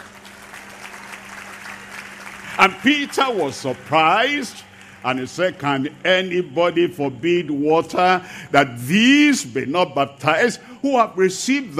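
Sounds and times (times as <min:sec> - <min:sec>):
audience clapping during a sermon: 0:00.0 - 0:06.4
speech: 0:02.6 - 0:11.7.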